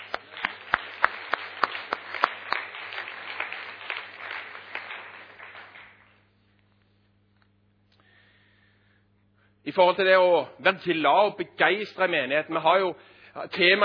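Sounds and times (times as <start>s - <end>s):
audience applause: 0.0s - 6.3s
sharp individual claps: 0.0s - 6.3s
speech: 9.7s - 13.8s.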